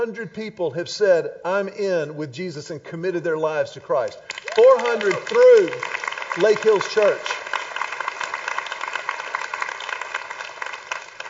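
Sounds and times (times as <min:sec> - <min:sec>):
speech: 0:00.0 - 0:07.4
audience clapping: 0:04.0 - 0:11.2.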